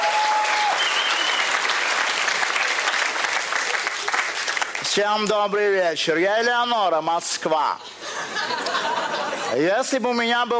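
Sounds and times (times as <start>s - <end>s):
audience applause: 0.0s - 4.9s
speech: 5.0s - 8.5s, 9.5s - 10.5s
laughter: 7.8s - 9.6s.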